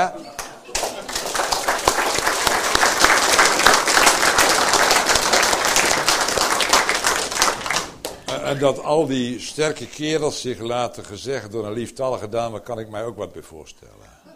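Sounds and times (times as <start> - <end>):
speech: 0.0 - 0.4, 8.5 - 14.2
audience applause: 0.7 - 8.6.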